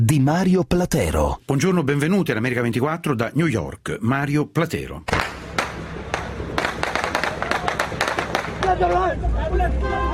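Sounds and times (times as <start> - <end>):
speech: 0.0 - 5.2, 8.7 - 10.1
gunshots during an attack at Karachi airport: 5.1 - 8.8
people screaming during an attack at Karachi airport: 7.1 - 10.1.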